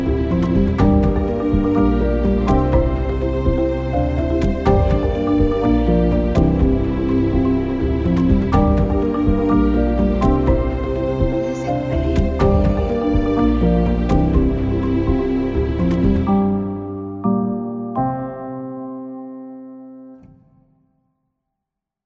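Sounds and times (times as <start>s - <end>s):
cinematic documentary background marimba music: 0.0s - 17.6s.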